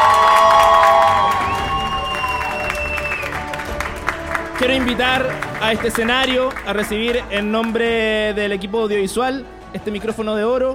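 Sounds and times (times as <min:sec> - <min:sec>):
audience cheering: 0:00.0 - 0:06.4
audience applause: 0:00.0 - 0:07.9
speech: 0:04.7 - 0:10.7.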